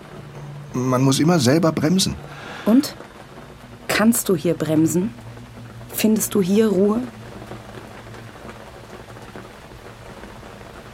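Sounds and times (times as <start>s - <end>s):
light drizzle: 0.0s - 10.9s
speech: 0.8s - 3.1s, 4.0s - 5.3s, 5.9s - 7.2s.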